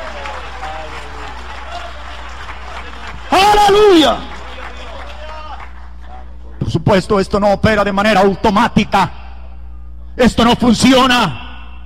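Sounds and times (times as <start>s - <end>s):
audience applauding: 0.0s - 6.5s
speech: 3.7s - 4.3s, 6.8s - 9.2s, 10.2s - 11.4s.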